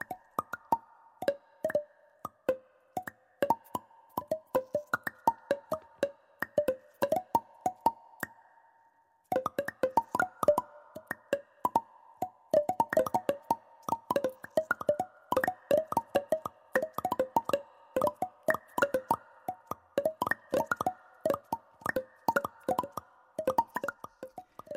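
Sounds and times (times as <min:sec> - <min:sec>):
music played on vegetable instruments: 0:00.0 - 0:08.5, 0:09.3 - 0:24.7.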